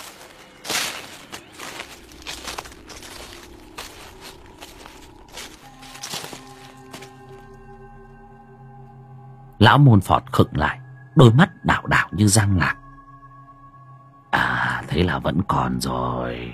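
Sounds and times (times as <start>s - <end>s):
shuffling footsteps of someone following behind: 0.0s - 7.5s
faint low hum: 0.1s - 16.5s
speech: 9.6s - 12.8s, 15.0s - 16.5s.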